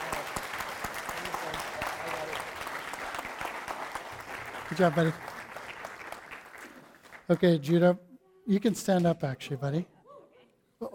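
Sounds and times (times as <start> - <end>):
room full of people applauding: 0.0 - 8.0
speech: 4.7 - 5.4, 7.3 - 9.9, 10.8 - 10.9.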